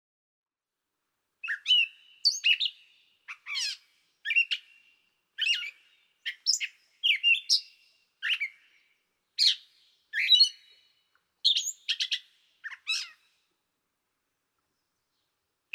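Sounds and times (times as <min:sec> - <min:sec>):
gray catbird singing varied squeaky harsh phrases: 0:01.4 - 0:08.8, 0:09.4 - 0:10.8, 0:11.4 - 0:13.2.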